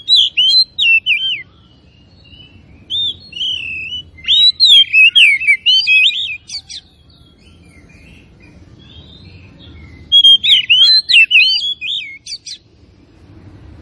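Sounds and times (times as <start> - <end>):
Oriental magpie-robin singing: 0.0 - 12.7.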